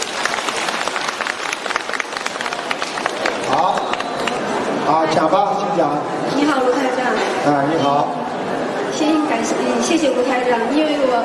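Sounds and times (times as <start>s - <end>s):
audience applause: 0.0s - 4.8s
speech: 4.9s - 8.2s, 9.0s - 11.2s.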